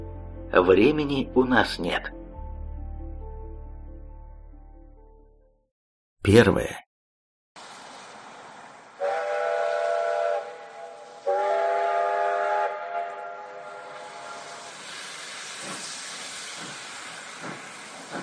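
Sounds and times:
speech: 0:00.5 - 0:02.2, 0:06.2 - 0:06.8
steam locomotive steam hissing: 0:07.6 - 0:12.4, 0:13.8 - 0:18.2
steam locomotive whistle blasts: 0:09.0 - 0:16.5.

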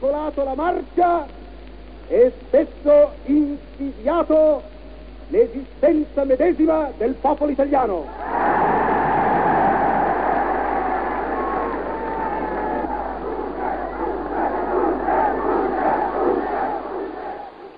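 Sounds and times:
speech: 0:00.1 - 0:01.4, 0:02.1 - 0:04.7, 0:05.3 - 0:08.4
crowd cheering and applauding a war declaration: 0:08.1 - 0:17.7.

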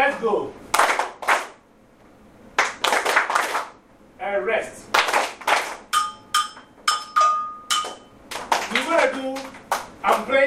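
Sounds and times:
speech: 0:00.2 - 0:00.6, 0:09.0 - 0:10.4
rhythmic hand clapping: 0:00.7 - 0:01.6, 0:02.6 - 0:03.8, 0:04.9 - 0:10.4.

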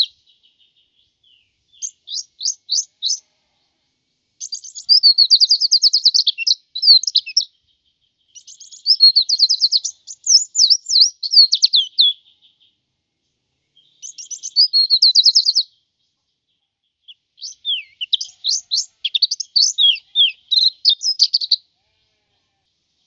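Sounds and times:
white-eye twittering song: 0:00.0 - 0:03.2, 0:04.4 - 0:07.6, 0:08.3 - 0:12.7, 0:13.8 - 0:15.7, 0:17.0 - 0:21.6.

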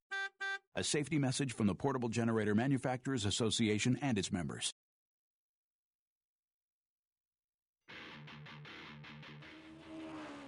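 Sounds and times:
speech: 0:00.8 - 0:04.8
race car engine revving: 0:09.4 - 0:10.4.

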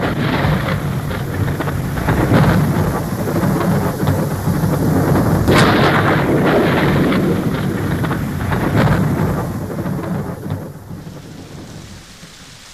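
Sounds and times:
deep thunder rumbling and rolling: 0:00.0 - 0:12.7
heavy downpour after sultry, muggy weather: 0:00.0 - 0:12.7.

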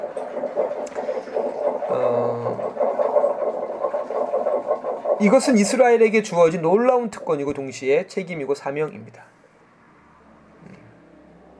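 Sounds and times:
air conditioner draining water gurgling: 0:00.0 - 0:07.3
air conditioner whirring while draining water: 0:00.0 - 0:11.5
speech: 0:01.9 - 0:02.6, 0:05.2 - 0:09.3.

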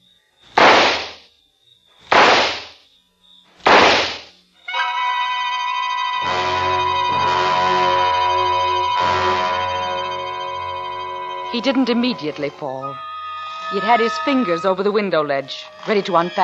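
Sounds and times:
handgun shots fired by a woman into a man's back: 0:00.6 - 0:01.2, 0:02.1 - 0:02.8, 0:03.7 - 0:04.3
sustained tonal drone: 0:04.7 - 0:16.4
speech: 0:11.6 - 0:13.1, 0:13.7 - 0:16.4.

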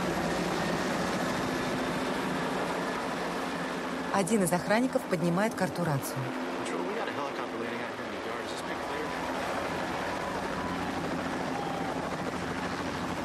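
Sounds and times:
helicopter circling overhead: 0:00.0 - 0:13.2
speech: 0:04.2 - 0:06.5.

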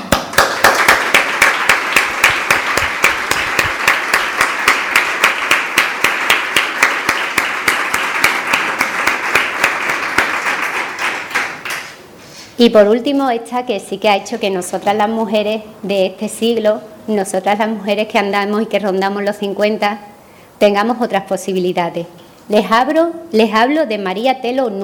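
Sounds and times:
audience clapping in a steady rhythm: 0:00.0 - 0:12.0
speech: 0:12.6 - 0:24.8.

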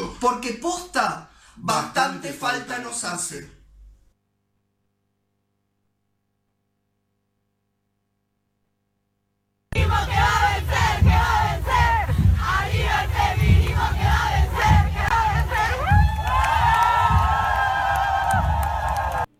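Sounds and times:
speech: 0:00.2 - 0:03.6
protest crowd chanting feminist slogans: 0:09.8 - 0:19.3.

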